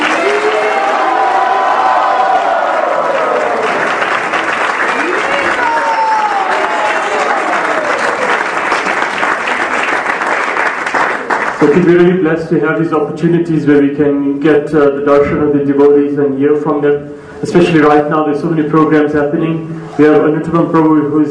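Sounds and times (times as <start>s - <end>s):
audience applauding and cheering: 0.0s - 11.9s
speech: 11.6s - 21.3s.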